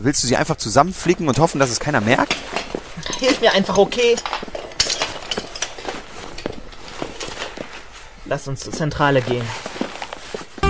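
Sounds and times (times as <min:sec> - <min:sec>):
speech: 0:00.0 - 0:04.5, 0:08.3 - 0:09.7
broken glass shards being picked up: 0:02.1 - 0:07.7.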